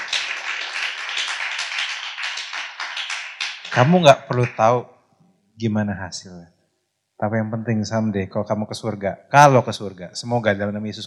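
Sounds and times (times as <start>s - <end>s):
audience clapping: 0.0s - 4.7s
speech: 3.7s - 4.9s, 5.6s - 6.6s, 7.2s - 11.0s.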